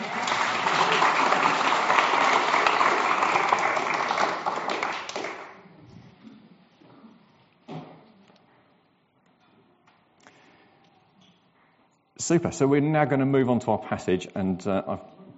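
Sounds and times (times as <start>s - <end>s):
audience applause: 0.0s - 5.6s
speech: 12.3s - 15.2s.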